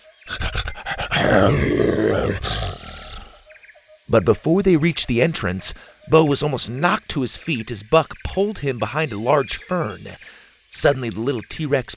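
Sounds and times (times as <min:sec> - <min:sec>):
excited panting: 0:00.3 - 0:03.4
speech: 0:01.2 - 0:02.7, 0:04.1 - 0:11.9.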